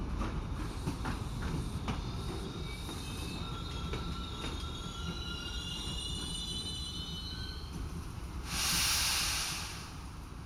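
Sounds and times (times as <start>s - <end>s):
sleeper train wheels squealing: 0.2s - 9.8s
air hiss: 8.4s - 10.3s.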